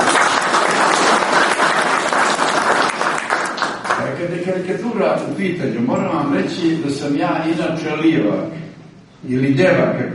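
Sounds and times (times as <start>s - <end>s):
audience applause at a celebration: 0.0s - 4.2s
speech: 4.5s - 10.1s.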